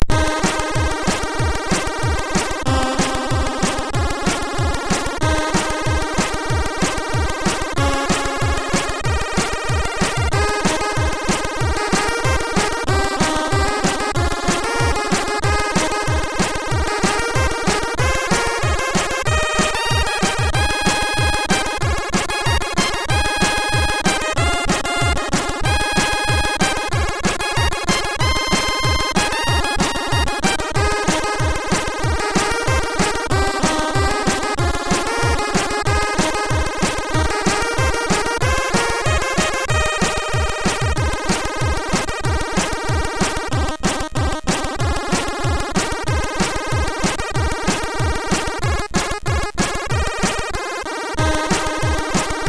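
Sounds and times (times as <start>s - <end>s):
MOS6581R3 SID chip music: 0.0s - 52.4s.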